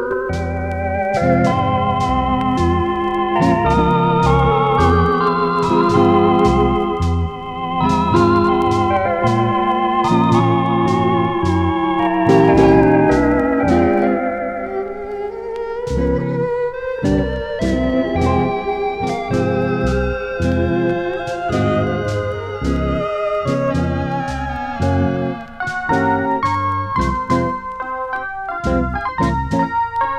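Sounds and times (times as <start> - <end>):
orchestra: 0.2 - 30.1.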